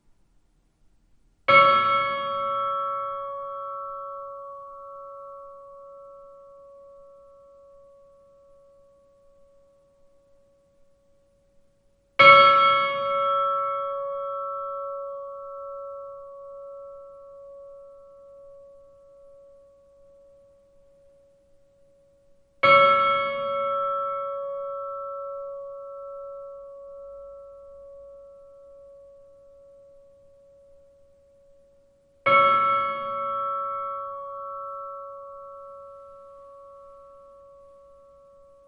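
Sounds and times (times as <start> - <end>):
Miðgarðar church bells tolling for a funeral: 1.5 - 7.1, 12.2 - 20.1, 22.6 - 30.4, 32.2 - 38.6.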